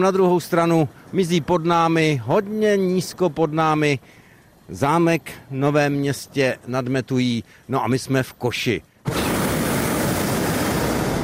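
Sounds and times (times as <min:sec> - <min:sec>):
speech: 0:00.0 - 0:09.2
hot air balloon burner firing: 0:09.0 - 0:11.2.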